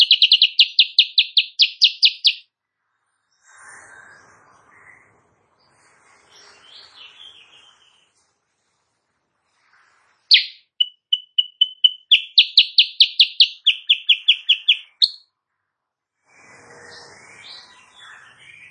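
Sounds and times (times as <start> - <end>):
sooty-headed bulbul song: 0.0 - 2.4, 10.3 - 15.2.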